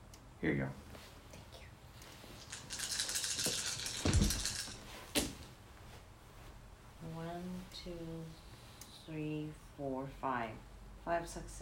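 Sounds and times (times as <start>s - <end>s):
speech: 0.4s - 0.9s, 7.2s - 8.4s, 9.1s - 11.6s
dice rattling in a hand and rolling across a surface: 2.4s - 4.8s.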